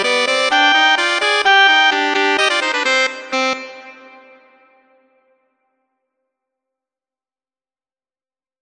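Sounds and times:
saxophone duet: 0:00.0 - 0:05.2.

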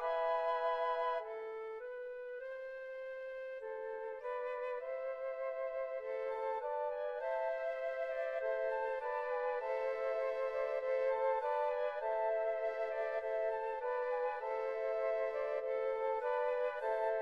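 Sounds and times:
flute quartet playing: 0:00.0 - 0:17.2.

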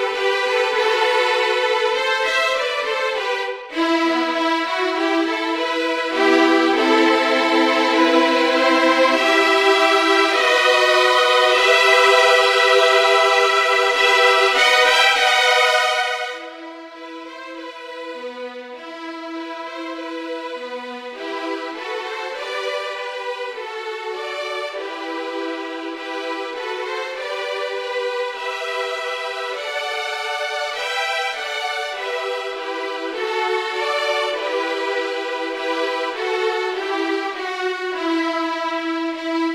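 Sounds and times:
string trio playing: 0:00.0 - 0:39.5.

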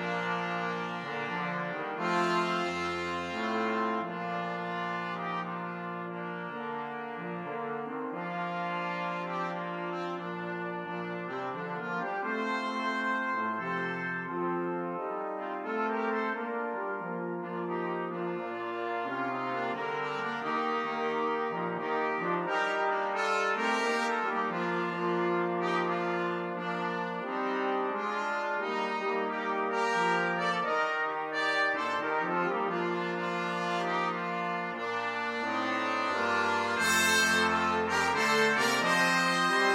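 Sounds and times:
jazz brass quartet: 0:00.0 - 0:39.7.

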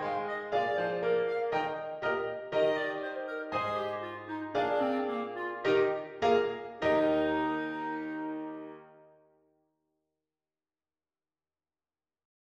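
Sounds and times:
clarinet: 0:00.0 - 0:09.2.

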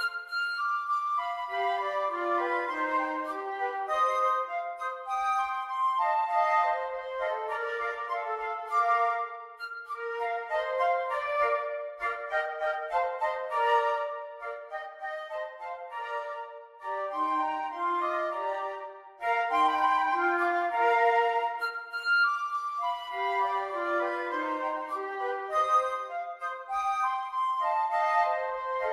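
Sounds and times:
flute trio playing an allegro: 0:00.0 - 0:28.9.

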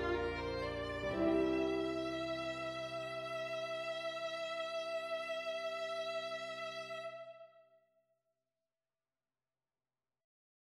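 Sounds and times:
violin: 0:00.0 - 0:07.6.

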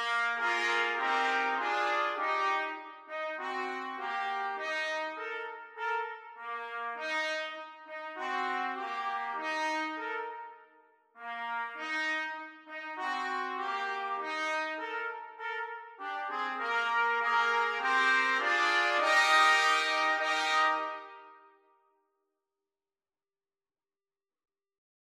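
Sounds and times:
trumpet quartet playing: 0:00.0 - 0:10.6, 0:11.2 - 0:21.3.

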